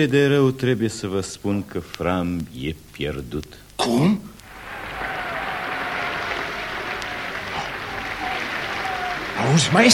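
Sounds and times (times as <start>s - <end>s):
speech: 0.0s - 4.4s, 9.5s - 9.9s
audience applauding a performer: 4.5s - 9.9s.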